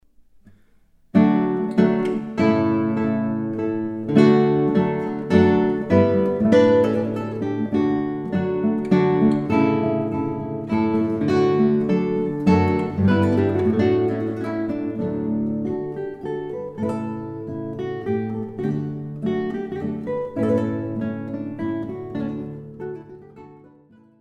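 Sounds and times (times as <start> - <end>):
two guitars playing a chaconne in D: 1.1 - 24.1.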